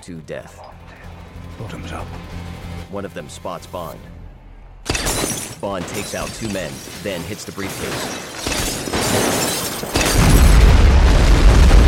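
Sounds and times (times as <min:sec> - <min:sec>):
speech: 0:00.0 - 0:00.8, 0:01.6 - 0:04.2, 0:05.1 - 0:08.5, 0:09.1 - 0:10.4
explosion blast: 0:10.1 - 0:11.8.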